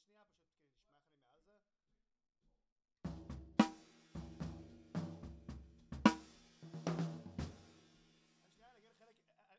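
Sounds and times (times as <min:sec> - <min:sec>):
snare drum top hit: 0:03.1 - 0:07.9.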